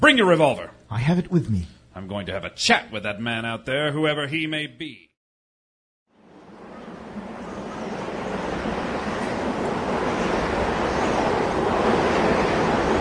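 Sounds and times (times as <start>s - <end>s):
speech: 0.0s - 5.1s
strong howling wind outdoors: 6.2s - 13.0s.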